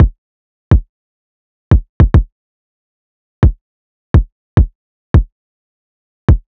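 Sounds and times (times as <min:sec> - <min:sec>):
riddim kick drum loop: 0:00.0 - 0:00.9, 0:01.7 - 0:02.3, 0:04.2 - 0:05.3, 0:06.3 - 0:06.5.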